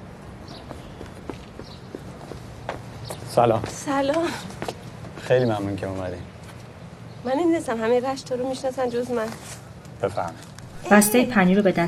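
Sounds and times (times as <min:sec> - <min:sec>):
footsteps going down stairs in a park: 0:00.5 - 0:05.3
speech: 0:03.4 - 0:04.5, 0:05.3 - 0:06.3, 0:07.2 - 0:11.8.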